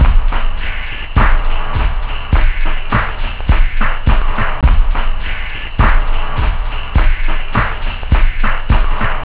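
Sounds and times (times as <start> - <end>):
bunker techno: 0.0 - 9.2.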